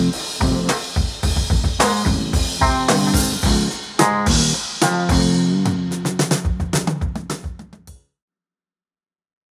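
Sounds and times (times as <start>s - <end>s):
chord jam: 0.0s - 7.3s.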